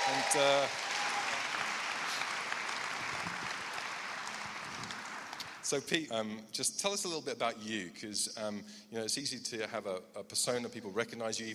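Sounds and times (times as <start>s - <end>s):
person cheering: 0.0s - 1.6s
audience clapping: 0.0s - 5.8s
speech: 0.2s - 1.0s, 5.7s - 11.5s.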